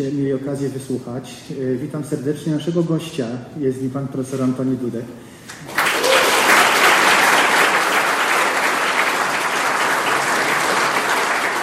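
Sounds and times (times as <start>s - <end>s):
speech: 0.0s - 5.7s
audience applause: 5.6s - 11.6s.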